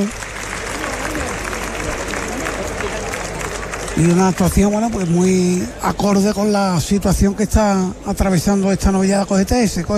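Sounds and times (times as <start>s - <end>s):
speech: 0.0s - 0.2s, 4.0s - 9.9s
large bullring crowd clapping and cheering in ovation: 0.0s - 6.7s.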